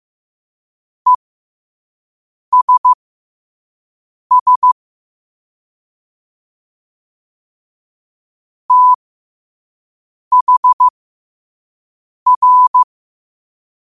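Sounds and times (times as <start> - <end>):
morse code at 5 wpm: 2.5 - 3.0, 4.3 - 4.8, 8.7 - 9.0, 10.3 - 10.9, 12.3 - 12.9.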